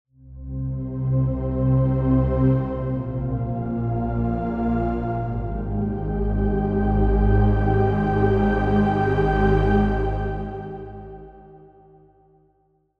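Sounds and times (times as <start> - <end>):
synth pad: 0.3 - 11.8.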